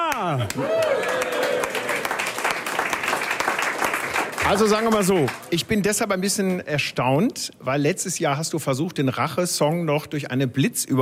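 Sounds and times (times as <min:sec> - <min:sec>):
crowd clapping: 0:00.0 - 0:05.7
vocal whoop: 0:00.1 - 0:02.0
speech: 0:00.3 - 0:01.2, 0:04.5 - 0:11.0.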